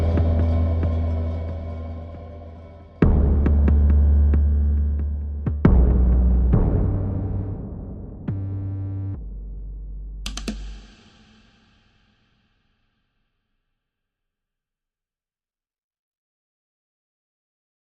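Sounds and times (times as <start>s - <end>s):
drums: 0.0s - 9.1s, 10.2s - 12.4s
bass: 0.0s - 11.0s.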